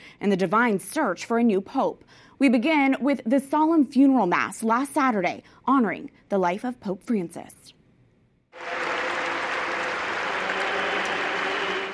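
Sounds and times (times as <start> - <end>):
speech: 0.2 - 7.8
huge crowd applauding in a large open square: 8.6 - 11.9.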